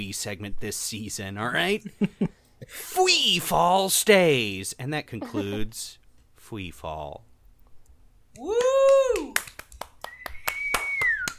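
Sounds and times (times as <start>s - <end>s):
speech: 0.1s - 7.3s, 8.4s - 9.0s
steady evenly spaced hand claps: 8.4s - 11.3s
high whistle-like gliding tone: 10.1s - 11.3s.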